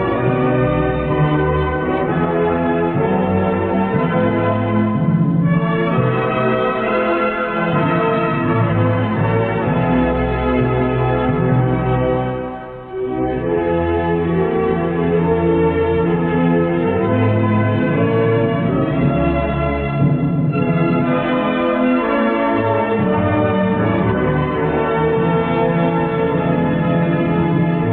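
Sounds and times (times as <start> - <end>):
national anthem: 0.0 - 27.9.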